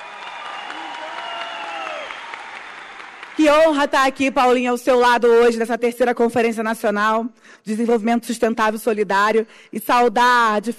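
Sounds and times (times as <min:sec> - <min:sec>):
faint cheering or whistling: 0:00.0 - 0:03.2
audience applause: 0:00.0 - 0:03.5
speech: 0:03.4 - 0:10.7.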